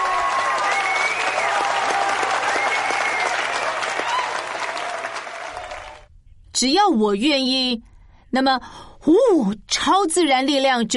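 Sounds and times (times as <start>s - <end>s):
crowd applause: 0.0s - 6.1s
speech: 6.6s - 10.9s.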